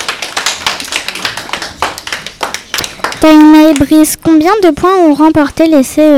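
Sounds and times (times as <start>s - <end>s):
applause: 0.0s - 3.9s
speech: 3.2s - 6.1s.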